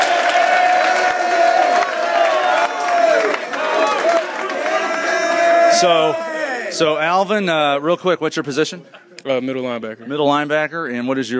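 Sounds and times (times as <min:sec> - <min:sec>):
crowd applause: 0:00.0 - 0:06.7
speech: 0:05.8 - 0:11.3.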